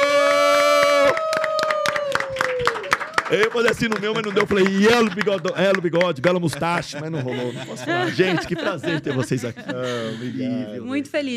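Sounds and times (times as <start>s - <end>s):
audience applause: 0.0s - 7.3s
speech: 3.3s - 11.3s
laughter: 3.8s - 10.7s.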